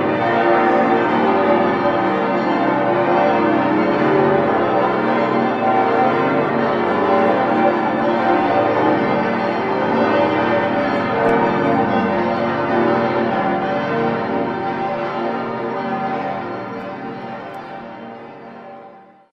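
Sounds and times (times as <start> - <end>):
bells of Würzburg Cathedral ringing: 0.0 - 19.2.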